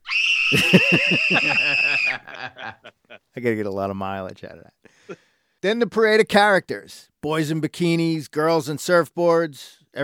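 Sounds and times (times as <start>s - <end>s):
woman screaming in a song: 0.0s - 2.4s
laughter: 0.5s - 3.2s
speech: 0.5s - 10.0s.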